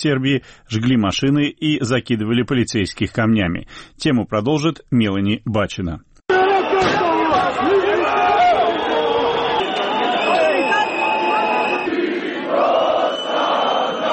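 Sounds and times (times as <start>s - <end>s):
speech: 0.0s - 6.1s
large protest crowd outside parliament shouting: 6.3s - 14.1s.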